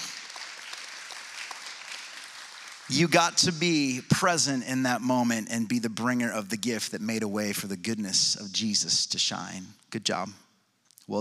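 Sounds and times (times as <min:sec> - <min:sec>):
audience applause: 0:00.0 - 0:03.3
speech: 0:02.9 - 0:10.4.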